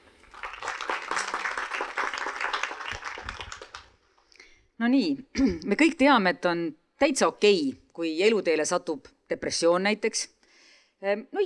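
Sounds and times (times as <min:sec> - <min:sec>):
audience applause: 0:00.0 - 0:04.0
speech: 0:04.8 - 0:10.4, 0:11.0 - 0:11.4.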